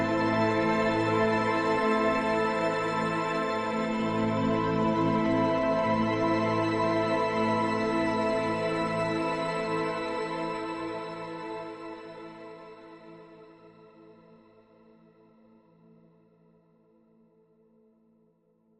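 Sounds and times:
ambient music: 0.0s - 13.5s.

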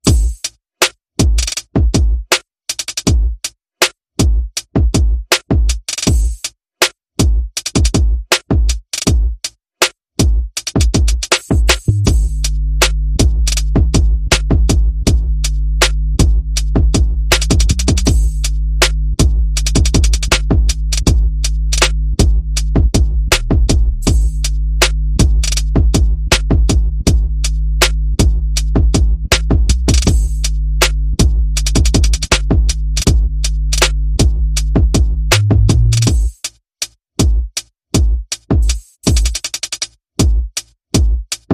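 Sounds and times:
bass: 0.0s - 0.4s, 11.0s - 36.4s
percussion: 0.0s - 41.5s.

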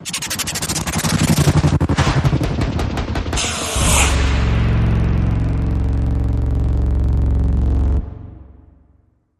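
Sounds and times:
stutter hit: 0.0s - 9.2s.

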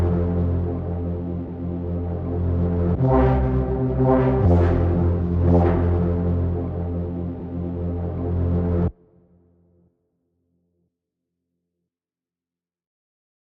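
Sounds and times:
bass: 0.0s - 9.0s.

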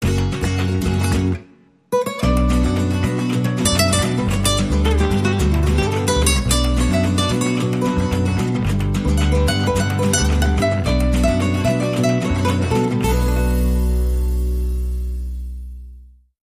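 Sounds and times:
passionate flamenco music: 0.0s - 16.0s.

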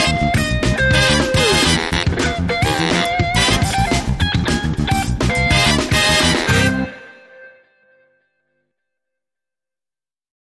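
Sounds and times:
funk music: 0.0s - 7.7s.

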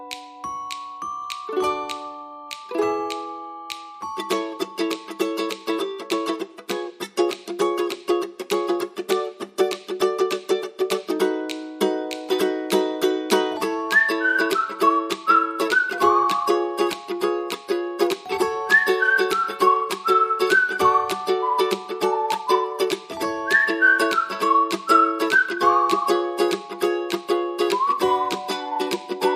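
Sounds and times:
ukulele: 0.0s - 29.3s
whistling: 13.6s - 17.0s, 18.6s - 26.7s, 27.6s - 29.3s.

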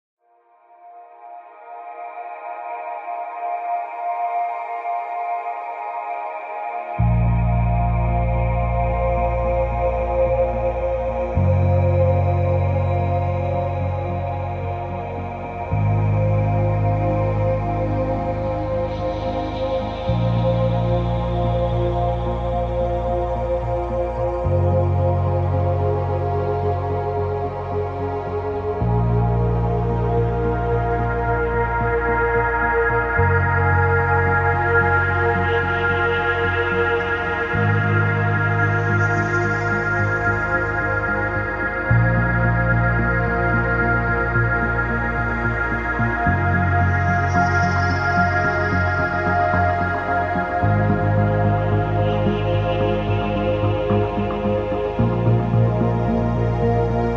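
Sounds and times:
music mix: 0.8s - 57.1s.

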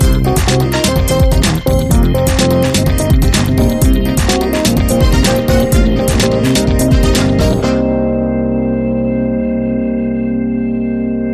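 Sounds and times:
funky model house music: 0.0s - 10.3s.

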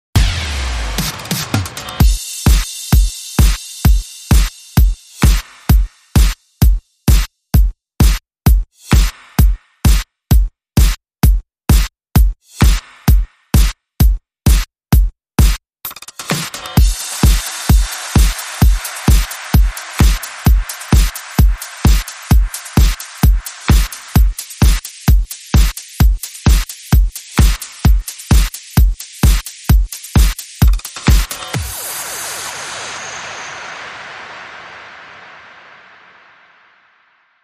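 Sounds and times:
circular motion beat: 0.2s - 32.9s.

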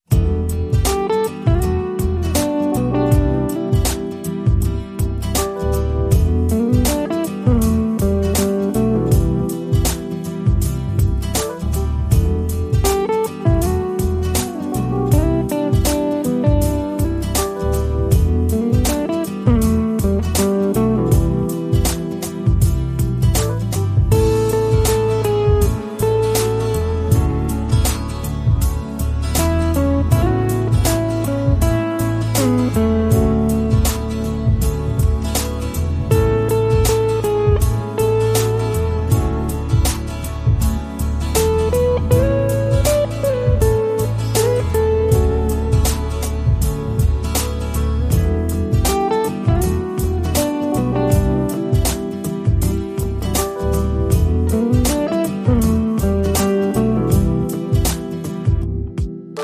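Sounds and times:
relaxing music: 0.0s - 59.4s.

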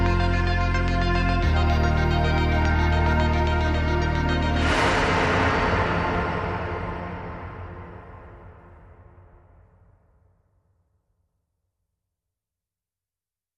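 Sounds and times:
synthesizer stem: 0.0s - 9.2s.

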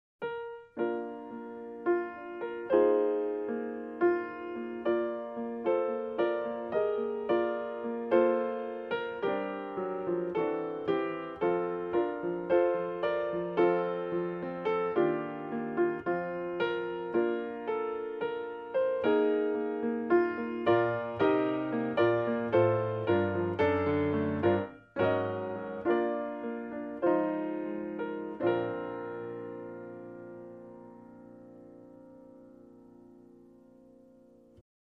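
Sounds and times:
solo piano carol: 0.2s - 34.6s.

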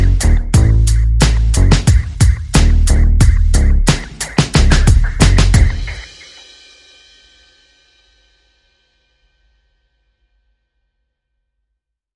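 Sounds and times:
bass: 0.0s - 6.0s
percussion: 0.0s - 9.5s.

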